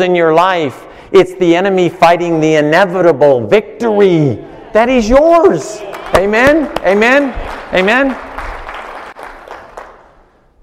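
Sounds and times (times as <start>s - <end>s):
speech: 0.0s - 8.3s
audience clapping: 5.8s - 10.4s.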